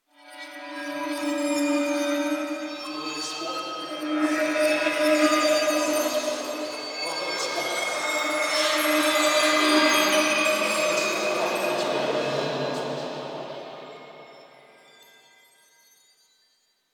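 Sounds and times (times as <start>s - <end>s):
chimes: 0.4s - 16.9s
whispers: 2.1s - 14.1s.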